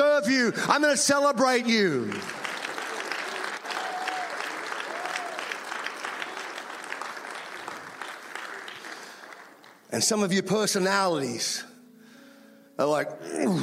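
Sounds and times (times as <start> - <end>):
speech: 0.2 - 2.4, 9.9 - 11.7, 12.8 - 13.6
audience applause: 2.0 - 9.9.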